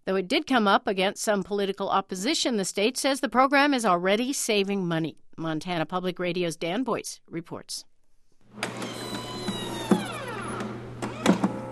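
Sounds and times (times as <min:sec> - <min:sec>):
speech: 0:00.1 - 0:07.9, 0:08.6 - 0:08.8
small electric pump inflating blood pressure cuff: 0:08.5 - 0:11.7.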